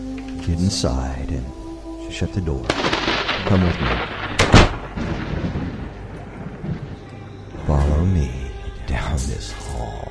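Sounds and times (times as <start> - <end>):
speech: 0.5 - 4.2, 7.7 - 8.4, 9.2 - 10.0
thunder cracking and rumbling before a downpour: 2.7 - 9.1.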